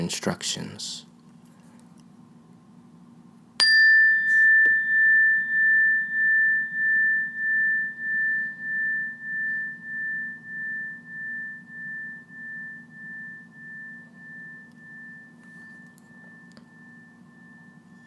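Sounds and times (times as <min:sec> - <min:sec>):
speech: 0:00.0 - 0:01.1
meditation bell chime: 0:03.6 - 0:18.0
low hum: 0:04.1 - 0:18.0.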